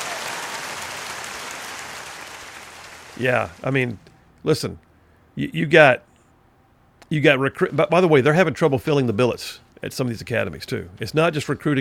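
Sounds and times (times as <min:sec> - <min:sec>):
applause sound effect: 0:00.0 - 0:03.7
speech: 0:03.2 - 0:06.1, 0:07.1 - 0:11.7.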